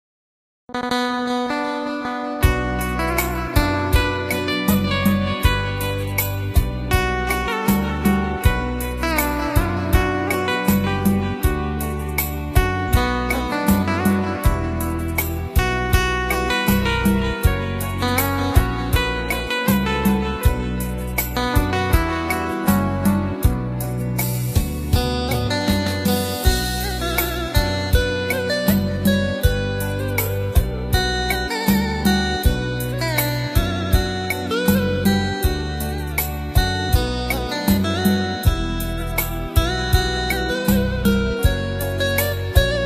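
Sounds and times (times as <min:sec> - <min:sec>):
Vietnamese overseas instrumental guitar music: 0:00.7 - 0:42.8.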